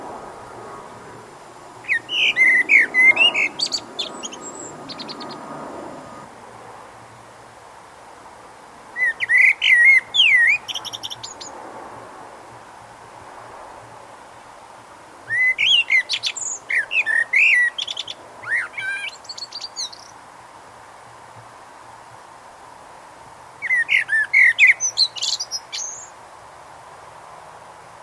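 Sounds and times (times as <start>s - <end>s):
common blackbird singing: 1.8s - 5.5s, 9.0s - 11.5s, 15.3s - 20.1s, 23.6s - 26.1s.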